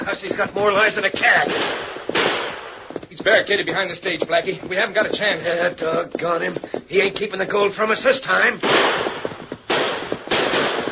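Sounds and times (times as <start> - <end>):
speech: 0.0 - 2.3, 3.2 - 9.1
gunshot: 1.2 - 3.0, 8.6 - 10.8.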